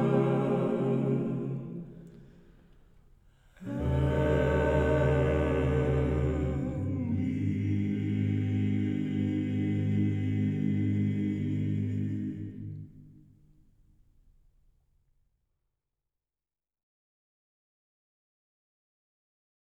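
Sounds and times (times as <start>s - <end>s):
vocal group singing: 0.0s - 2.6s, 3.5s - 13.1s.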